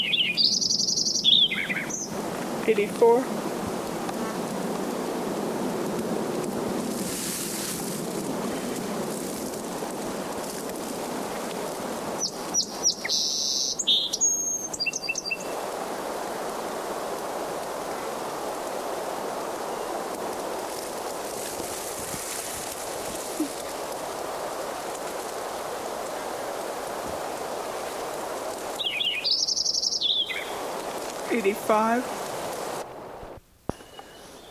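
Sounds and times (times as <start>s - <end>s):
Lincoln's sparrow singing trilled phrases: 0.0s - 2.1s, 12.2s - 15.6s, 28.8s - 30.6s
steady hiss: 0.0s - 34.4s
speech: 2.6s - 3.4s, 31.7s - 32.2s.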